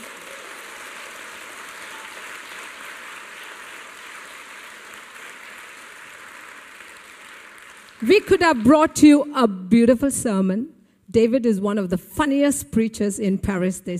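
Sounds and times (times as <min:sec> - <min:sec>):
crowd clapping: 0:00.0 - 0:09.1
speech: 0:08.0 - 0:13.9.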